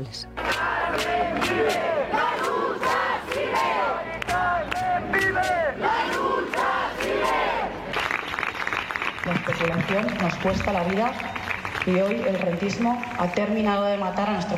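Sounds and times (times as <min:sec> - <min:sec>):
speech: 0:00.0 - 0:02.2, 0:09.6 - 0:14.5
large protest crowd clapping in rhythm: 0:00.3 - 0:14.5
protest crowd shouting and chanting: 0:00.4 - 0:07.9.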